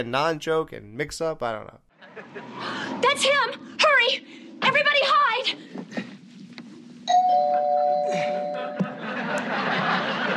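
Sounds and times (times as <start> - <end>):
speech: 0.0 - 6.1, 7.1 - 10.3
laughter: 2.0 - 2.8, 8.2 - 10.3
doorbell two-tone chime: 7.1 - 9.2.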